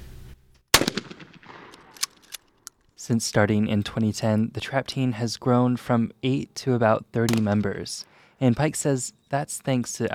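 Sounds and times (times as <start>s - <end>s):
shotgun firing at a clay target during trap shooting practice: 0.7s - 2.1s, 7.3s - 7.7s
speech: 3.0s - 10.1s.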